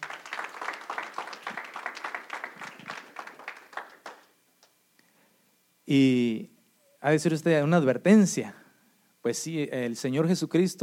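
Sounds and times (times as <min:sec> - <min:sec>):
audience applause: 0:00.0 - 0:04.3
speech: 0:05.9 - 0:08.6, 0:09.2 - 0:10.8.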